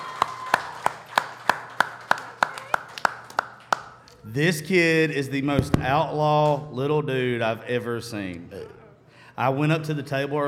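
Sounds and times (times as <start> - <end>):
rhythmic applause claps: 0.0 - 4.2
speech: 4.3 - 8.8, 9.4 - 10.4.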